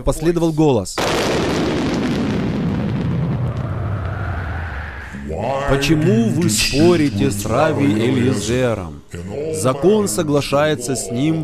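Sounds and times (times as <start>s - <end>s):
speech: 0.0s - 1.7s, 5.3s - 11.4s
thunderclap: 1.0s - 7.6s.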